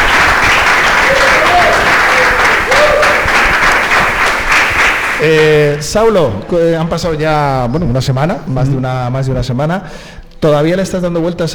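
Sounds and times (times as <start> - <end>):
studio applause: 0.0 - 5.8
speech: 5.2 - 11.5.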